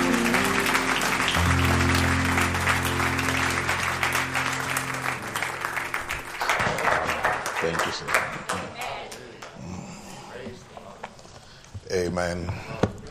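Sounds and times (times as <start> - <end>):
low sustained organ chord: 0.0 - 6.6
audience applause: 0.0 - 8.8
speech: 12.2 - 12.8.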